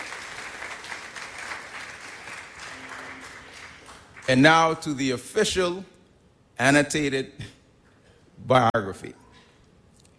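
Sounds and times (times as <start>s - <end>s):
applause: 0.0s - 4.5s
speech: 4.3s - 5.9s, 6.6s - 7.6s, 8.4s - 9.2s.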